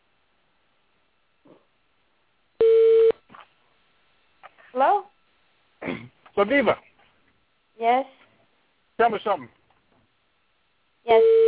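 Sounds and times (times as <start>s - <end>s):
phone electronic tone: 2.6s - 3.1s, 11.1s - 11.4s
speech: 4.8s - 5.1s, 6.4s - 6.9s, 7.8s - 8.2s, 9.0s - 9.6s, 11.1s - 11.4s.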